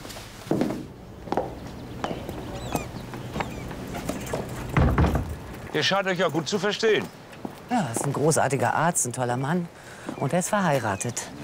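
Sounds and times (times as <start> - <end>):
footsteps going downstairs: 0.0 - 8.3
speech: 5.8 - 11.4.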